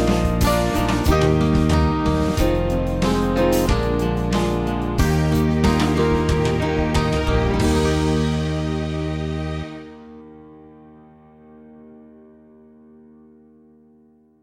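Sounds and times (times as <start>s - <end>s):
band playing a song in Russian: 0.0s - 9.9s.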